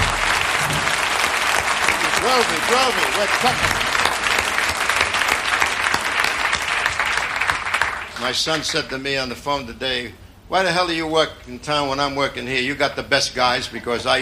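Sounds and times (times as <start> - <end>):
audience applause for the orchestra: 0.0 - 8.7
speech: 2.2 - 3.8, 8.2 - 14.2.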